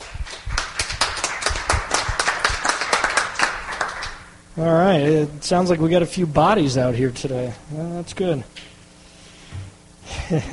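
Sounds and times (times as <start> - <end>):
crowd clapping: 0.0 - 4.3
speech: 4.6 - 8.7, 10.3 - 10.5.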